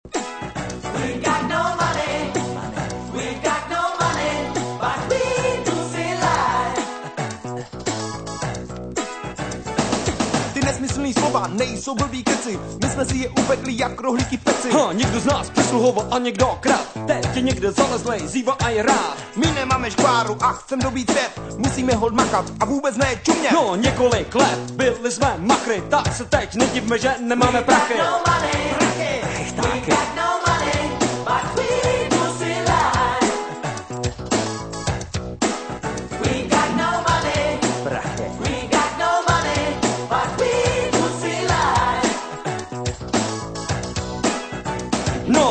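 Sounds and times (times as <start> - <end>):
rap hip hop house music: 0.0 - 45.4.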